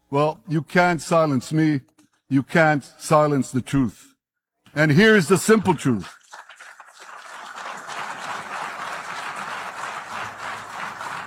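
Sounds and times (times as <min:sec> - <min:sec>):
speech: 0:00.1 - 0:04.1, 0:04.7 - 0:06.2
audience applause in played recording: 0:06.2 - 0:11.2.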